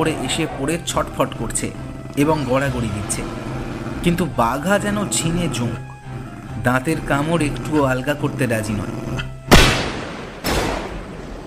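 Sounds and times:
speech: 0:00.0 - 0:05.9, 0:06.6 - 0:09.2
rifles fired at a wild animal: 0:09.5 - 0:11.4.

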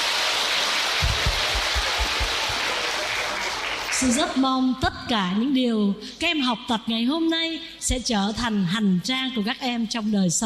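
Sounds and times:
loud audience applause: 0:00.0 - 0:04.4
speech: 0:04.0 - 0:10.4.

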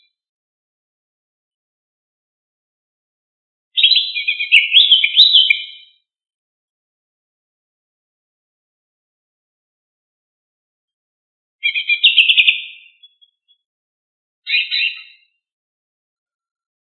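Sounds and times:
leafbird giving scratchy twittering phrases: 0:03.8 - 0:05.8, 0:11.6 - 0:13.5, 0:14.5 - 0:15.2.

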